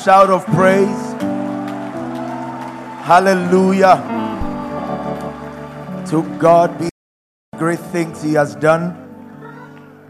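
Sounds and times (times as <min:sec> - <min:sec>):
speech: 0:00.0 - 0:01.2, 0:03.1 - 0:04.2, 0:06.1 - 0:06.9, 0:07.6 - 0:09.0
audience clapping hands: 0:00.0 - 0:06.9.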